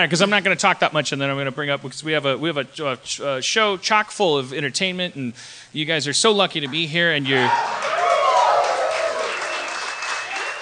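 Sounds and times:
speech: 0.0s - 8.0s
audience applause: 7.4s - 10.5s.

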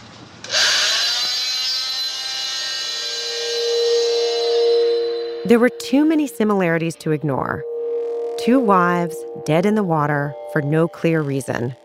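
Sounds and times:
powered autopsy saw cutting through bone: 0.5s - 5.3s
speech: 5.5s - 7.7s, 8.4s - 11.8s.

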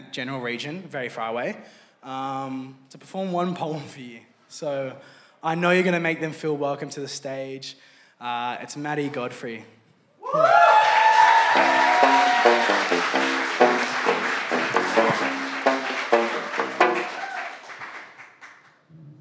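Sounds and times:
speech: 0.1s - 11.0s
audience clapping for performer: 10.4s - 18.8s.

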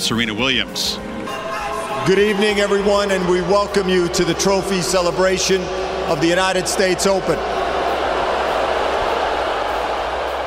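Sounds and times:
speech: 0.1s - 1.2s, 2.0s - 7.6s
stadium crowd booing at 2018 US Open final: 1.2s - 10.4s.

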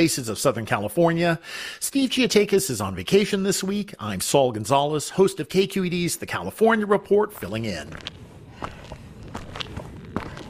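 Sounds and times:
speech: 0.0s - 8.8s
footsteps of people hiking on a trail at the Portuguese Bend Reserve: 7.3s - 10.4s.

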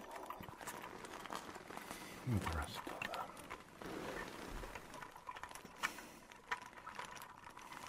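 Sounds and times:
leather coat rustling and creaking: 0.2s - 7.8s.

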